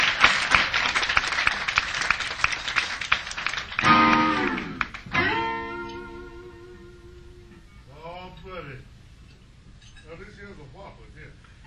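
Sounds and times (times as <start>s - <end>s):
audience clapping for the drummer at a live show: 0.0s - 5.6s.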